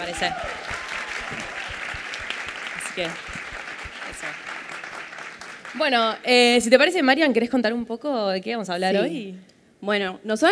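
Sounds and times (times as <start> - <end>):
speech: 0.0 - 1.5, 3.0 - 3.4, 5.7 - 10.4
audience applause: 0.0 - 6.0.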